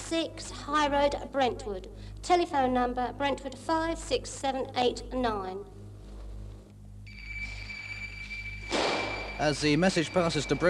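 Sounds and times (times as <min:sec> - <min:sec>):
speech: 0:00.1 - 0:05.7, 0:09.4 - 0:10.6
fire station call-out alarm: 0:07.0 - 0:10.6.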